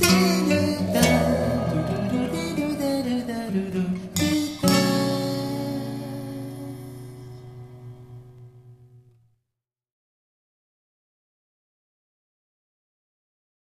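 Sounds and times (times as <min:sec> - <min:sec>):
song: 0:00.2 - 0:05.7.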